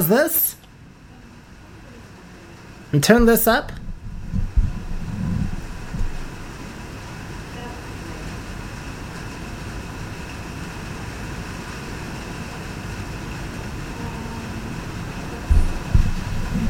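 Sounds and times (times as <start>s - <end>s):
speech: 0.1s - 0.6s, 2.9s - 3.8s
rain falling outside: 3.8s - 16.6s.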